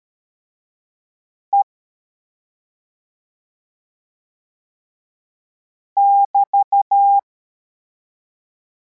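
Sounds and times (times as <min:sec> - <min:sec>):
CW morse code beeps: 0:06.0 - 0:07.2.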